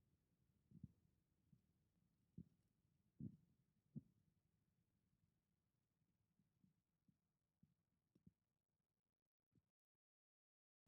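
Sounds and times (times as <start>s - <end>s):
heartbeat in left ear: 3.2s - 3.4s.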